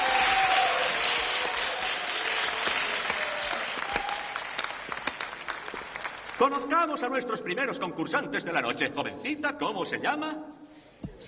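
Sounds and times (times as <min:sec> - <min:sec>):
audience applause: 0:00.0 - 0:06.7
speech: 0:06.4 - 0:10.6.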